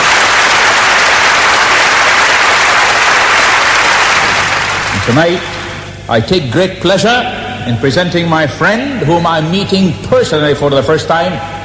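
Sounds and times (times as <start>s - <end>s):
audience applause in Baton Rouge welcoming a guest: 0.0s - 5.9s
speech: 5.1s - 5.5s, 6.1s - 11.5s.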